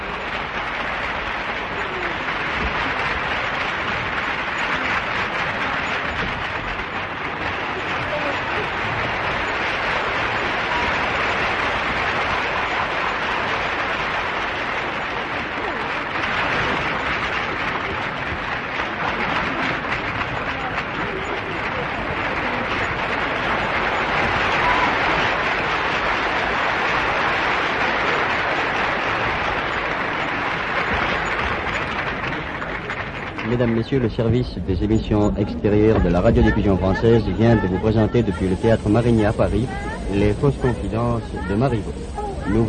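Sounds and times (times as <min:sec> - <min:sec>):
theatre audience applauding wildly: 0:00.0 - 0:42.6
speech: 0:33.6 - 0:42.6.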